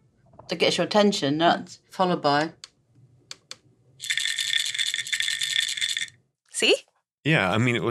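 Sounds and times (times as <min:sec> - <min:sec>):
speech: 0:00.5 - 0:02.6, 0:06.6 - 0:07.9
pill bottle rattling: 0:04.0 - 0:06.2.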